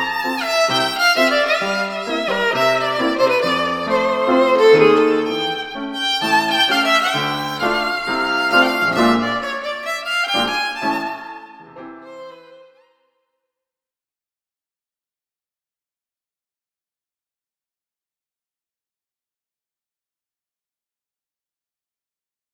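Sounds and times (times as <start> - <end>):
piano in a violin and piano duo: 0.0 - 12.9
violin in a violin and piano duo: 0.0 - 13.1.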